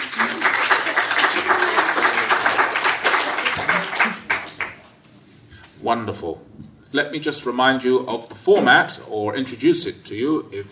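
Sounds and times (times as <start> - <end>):
audience clapping: 0.0 - 5.0
speech: 5.8 - 10.7.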